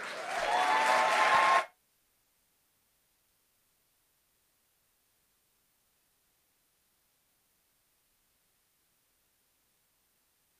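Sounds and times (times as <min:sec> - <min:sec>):
audience applause and cheering: 0:00.0 - 0:01.8.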